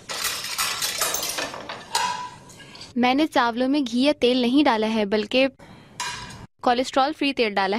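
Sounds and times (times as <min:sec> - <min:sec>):
plate, crockery and cutlery clinking at a home meal: 0:00.0 - 0:02.9
speech: 0:03.0 - 0:05.6, 0:06.6 - 0:07.7.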